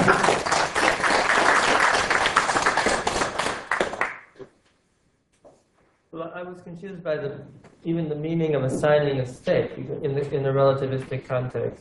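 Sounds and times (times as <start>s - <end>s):
room full of people applauding: 0.0s - 4.4s
speech: 6.8s - 11.7s.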